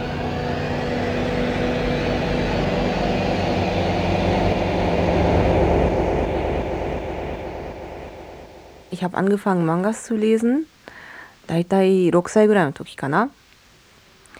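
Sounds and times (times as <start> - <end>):
train running on railway tracks: 0.0 - 8.9
speech: 9.0 - 10.7, 11.5 - 13.4.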